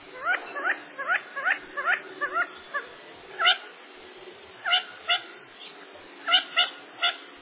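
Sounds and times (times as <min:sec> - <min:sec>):
quail calling nervously by a motor road: 0:00.1 - 0:03.7, 0:04.6 - 0:05.4, 0:06.2 - 0:07.3.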